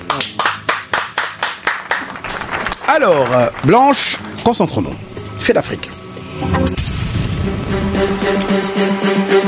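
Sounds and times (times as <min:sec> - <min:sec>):
audience applauding: 0:00.0 - 0:04.8
speech: 0:02.9 - 0:06.8, 0:07.4 - 0:09.3.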